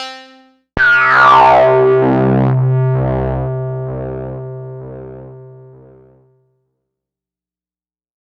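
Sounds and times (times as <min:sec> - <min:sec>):
Korg MS-20 leads and keys: 0:00.8 - 0:06.2.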